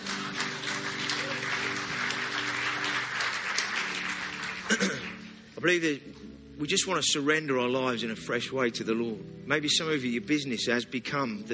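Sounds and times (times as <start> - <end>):
audience clapping: 0.0 - 5.6
faint sustained musical hum: 0.0 - 11.5
speech: 4.7 - 5.0, 5.6 - 11.5.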